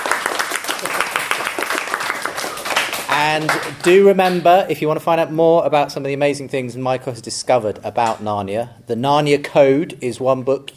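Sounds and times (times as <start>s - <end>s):
audience applause: 0.0s - 3.8s
speech: 3.2s - 10.7s.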